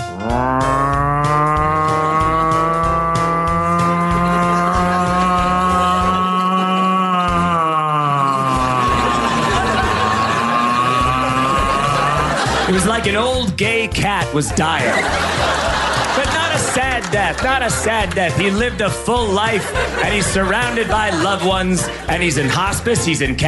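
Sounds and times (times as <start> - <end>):
voice imitating a slow old-fashioned siren: 0.2 - 9.4
laughter: 1.3 - 13.4, 14.1 - 23.1
speech: 13.0 - 15.5, 16.7 - 23.4.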